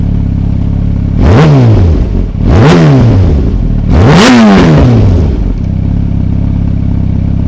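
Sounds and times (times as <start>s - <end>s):
racing engine with Akrapovic exhaust: 0.2s - 7.4s.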